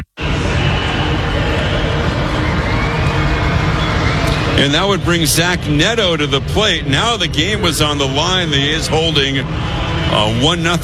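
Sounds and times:
baseball crowd standing ovation for Ginn: 0:00.2 - 0:04.5
speech: 0:04.6 - 0:10.8.

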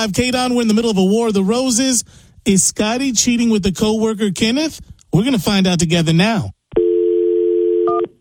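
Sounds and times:
speech: 0:00.0 - 0:06.6
telephone dial tone: 0:06.8 - 0:08.1.

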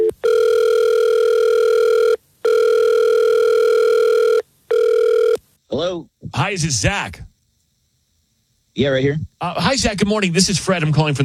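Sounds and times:
telephone ringback tone on an outgoing call: 0:00.0 - 0:05.4
speech: 0:06.5 - 0:07.3, 0:08.8 - 0:11.2.

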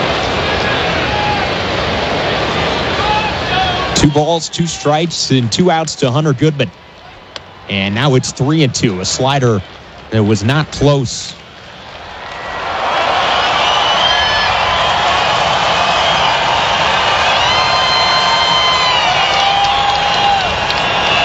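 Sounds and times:
baseball stadium crowd cheering: 0:00.0 - 0:21.2
speech: 0:04.0 - 0:06.8, 0:07.7 - 0:11.4
shrill whistles: 0:12.3 - 0:21.2.

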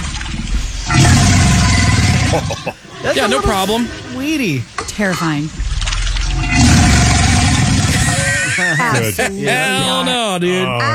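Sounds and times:
alligator hissing growl: 0:00.5 - 0:04.4, 0:05.2 - 0:08.8
laughter: 0:02.1 - 0:03.9, 0:07.9 - 0:10.9
speech: 0:02.3 - 0:05.7, 0:08.8 - 0:10.9.

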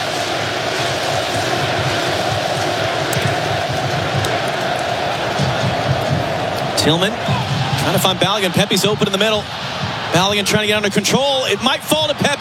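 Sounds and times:
stadium crowd cheering to lift team: 0:00.0 - 0:12.3
speech: 0:06.8 - 0:12.3.

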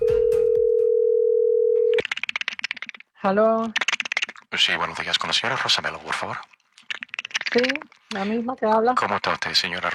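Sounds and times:
telephone dial tone: 0:00.0 - 0:02.0
speech: 0:03.2 - 0:03.8, 0:04.5 - 0:06.5, 0:07.6 - 0:09.9.

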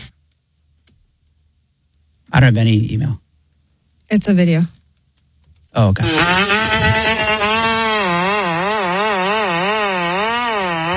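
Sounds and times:
speech: 0:02.4 - 0:03.2, 0:04.1 - 0:04.8, 0:05.8 - 0:07.7
robotic remote-control lawnmower cutting: 0:06.0 - 0:10.9.

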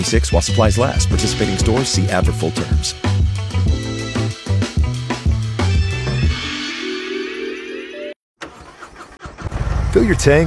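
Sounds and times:
speech: 0:00.0 - 0:03.6, 0:10.0 - 0:10.4
music: 0:00.0 - 0:08.2
Harley-Davidson motorcycle engine starting and revving: 0:08.4 - 0:10.4.

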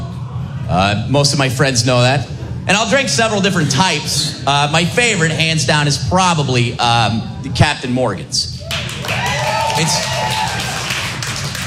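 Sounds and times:
speech: 0:00.7 - 0:08.6, 0:09.8 - 0:10.6
audience clapping: 0:08.7 - 0:11.6.

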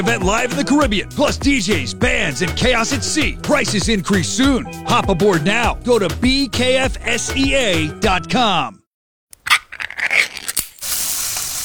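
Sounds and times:
speech: 0:00.0 - 0:08.8
crackling and scraping noises: 0:09.4 - 0:11.6
Spam sizzling in a pan: 0:10.6 - 0:11.6.

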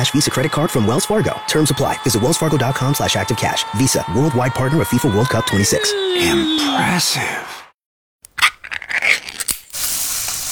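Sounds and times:
speech: 0:00.0 - 0:07.6
Spam sizzling in a frying pan: 0:09.6 - 0:10.5.

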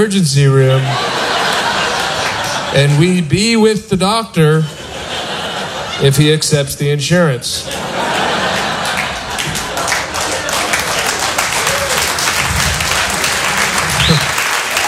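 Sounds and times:
speech: 0:00.0 - 0:01.2, 0:02.7 - 0:04.8, 0:06.0 - 0:08.0
laughter: 0:00.6 - 0:03.4, 0:04.4 - 0:06.6, 0:07.5 - 0:14.8
crowd applauding: 0:00.9 - 0:03.2, 0:07.7 - 0:14.8.

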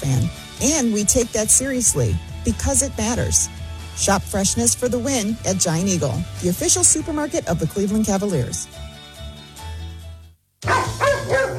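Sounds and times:
speech: 0:00.1 - 0:08.8
Ralphie the poodle barking: 0:10.6 - 0:11.5.

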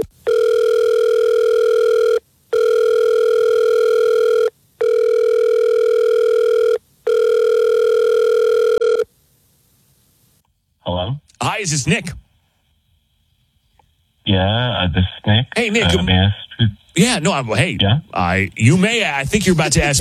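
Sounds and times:
telephone call ringing out: 0:00.0 - 0:09.1
speech: 0:11.7 - 0:12.2, 0:14.4 - 0:19.9.

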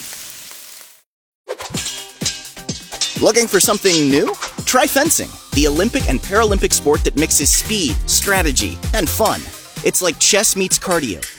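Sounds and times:
Spam sizzling as it fries in a pan: 0:00.0 - 0:01.1
speech: 0:03.2 - 0:11.3.

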